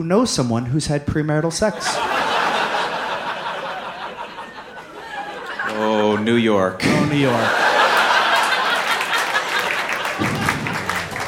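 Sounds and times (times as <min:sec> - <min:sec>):
speech: 0:00.0 - 0:02.3, 0:06.2 - 0:07.6
laughter: 0:01.7 - 0:11.2
audience clapping: 0:07.2 - 0:11.2.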